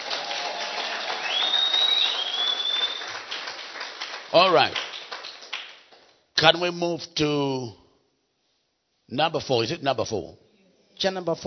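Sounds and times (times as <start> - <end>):
audience clapping: 0.0 - 6.2
speech: 4.3 - 4.9, 6.4 - 7.8, 9.1 - 10.4, 11.0 - 11.4.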